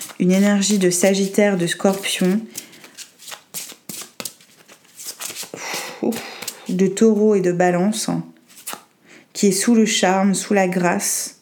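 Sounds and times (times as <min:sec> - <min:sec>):
tarot cards being shuffled and drawn: 0:00.0 - 0:06.8, 0:08.5 - 0:08.9
speech: 0:00.2 - 0:02.6, 0:06.0 - 0:08.3, 0:09.4 - 0:11.4.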